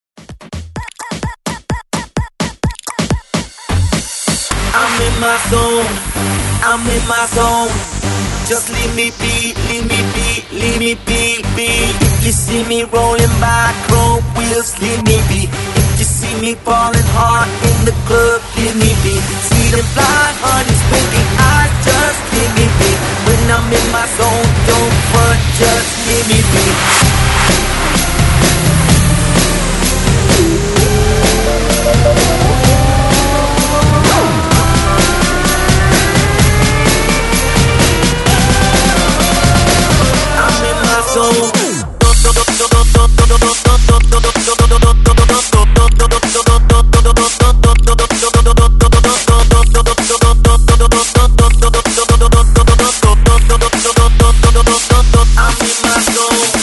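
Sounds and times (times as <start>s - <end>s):
breakbeat mix at 128 bpm: 0.2s - 56.6s.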